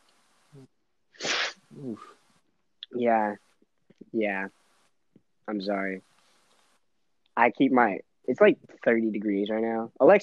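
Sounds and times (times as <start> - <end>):
speech: 0.6 - 0.8, 1.8 - 2.2, 2.9 - 3.4, 4.1 - 4.6, 5.5 - 6.1, 7.4 - 10.2
sharp breathy sniffle: 1.2 - 2.1
short vocal grunt: 1.8 - 2.0
brief voiced murmur: 1.8 - 2.1, 2.8 - 3.4, 4.1 - 4.5, 5.5 - 6.0, 7.4 - 10.1.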